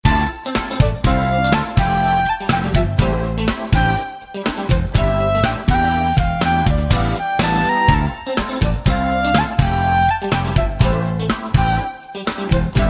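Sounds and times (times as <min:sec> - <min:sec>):
background music: 0:00.0 - 0:12.8.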